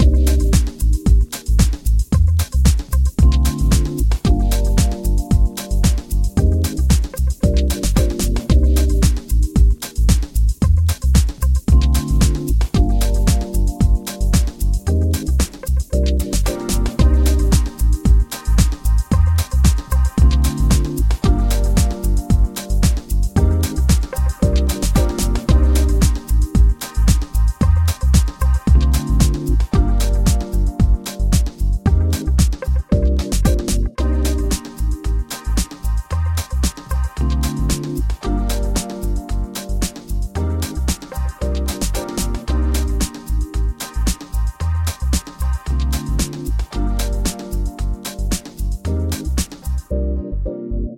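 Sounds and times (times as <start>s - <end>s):
easy background house music: 0.0s - 50.7s.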